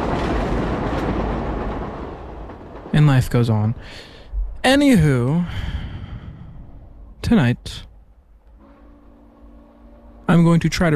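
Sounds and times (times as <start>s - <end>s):
train passing: 0.0s - 10.9s
speech: 3.0s - 5.8s, 7.3s - 7.9s, 10.3s - 10.9s.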